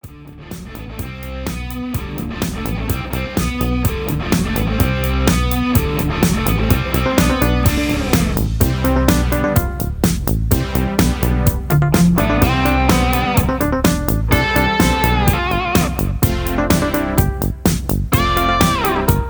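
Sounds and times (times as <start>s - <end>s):
instrumental music with leads: 0.0s - 19.2s.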